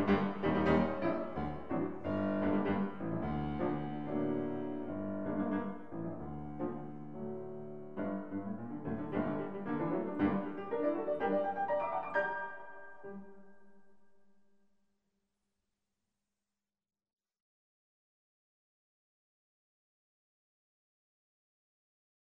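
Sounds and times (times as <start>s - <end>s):
piano prelude in G minor: 0.0s - 13.9s.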